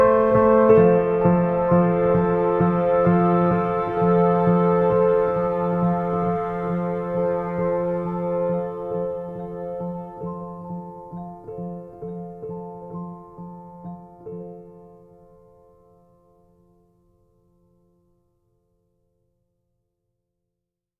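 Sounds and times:
cinematic piano music: 0.0 - 16.1.

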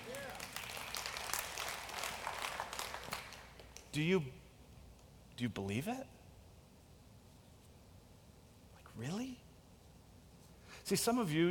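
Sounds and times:
crowd clapping: 0.0 - 3.9
speech: 3.9 - 4.4, 5.4 - 6.2, 9.0 - 9.4, 10.9 - 11.4.

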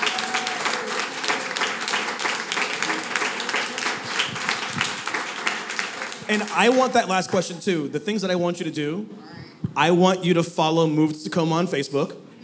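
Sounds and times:
audience applause: 0.0 - 7.2
speech: 6.3 - 12.2.

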